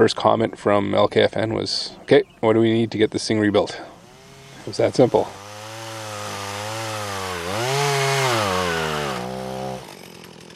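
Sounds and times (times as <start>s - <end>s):
speech: 0.0s - 3.9s, 4.7s - 5.4s
chainsaw bucking fallen trees into lengths: 3.7s - 10.5s.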